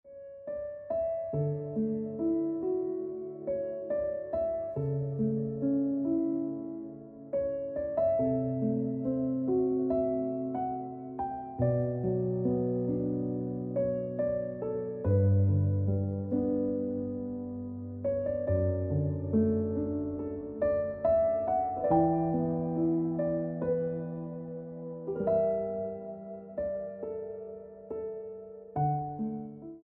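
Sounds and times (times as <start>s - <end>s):
piano music: 0.0s - 29.8s.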